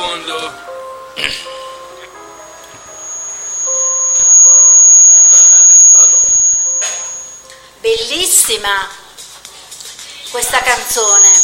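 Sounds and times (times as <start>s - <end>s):
speech: 0.2s - 1.6s, 7.8s - 9.0s, 10.3s - 11.3s
high-pitched whistle: 2.6s - 7.5s, 11.0s - 11.4s.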